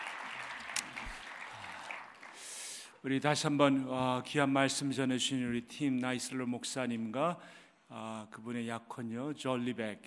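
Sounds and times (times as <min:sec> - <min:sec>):
congregation applauding during a church service: 0:00.0 - 0:03.0
speech: 0:03.0 - 0:10.0.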